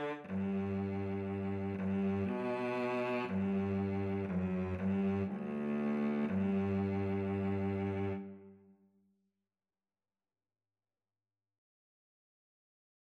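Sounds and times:
oboe and cello duet: 0.0s - 8.5s.

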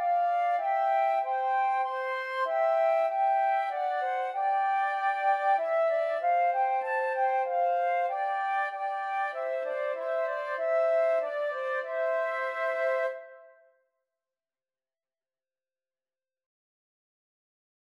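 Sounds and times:
flute trio playing a Christmas hymn: 0.0s - 13.5s.

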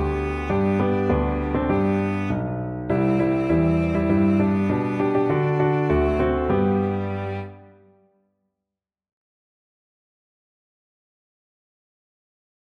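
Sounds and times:
piano trio playing: 0.0s - 8.0s.

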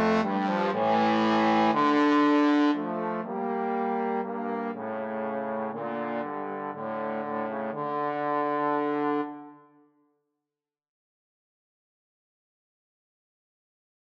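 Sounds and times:
trombone trio: 0.0s - 9.5s.

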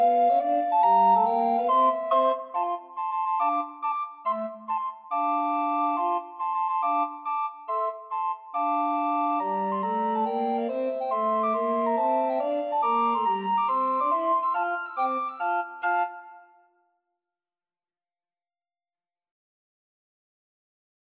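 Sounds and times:
recorder quartet: 0.0s - 16.5s.

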